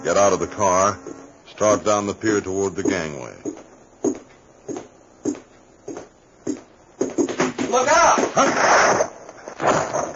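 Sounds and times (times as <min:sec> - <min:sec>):
speech: 0:00.0 - 0:03.7, 0:08.4 - 0:09.1
wooden packing crates crashing onto a dock: 0:07.3 - 0:10.1.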